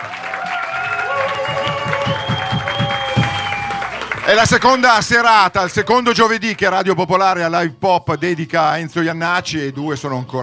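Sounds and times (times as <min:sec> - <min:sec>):
audience applause for live band: 0:00.0 - 0:06.6
speech: 0:04.3 - 0:10.4.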